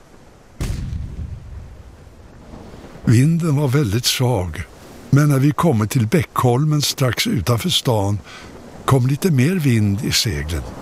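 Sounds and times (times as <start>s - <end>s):
cannon salute firing: 0.6s - 1.9s
speech: 3.1s - 10.8s.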